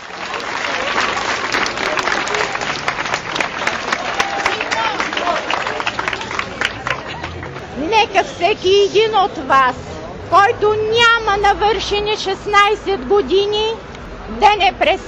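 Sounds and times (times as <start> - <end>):
crowd applauding and cheering: 0.0 - 7.7
speech: 8.6 - 15.0.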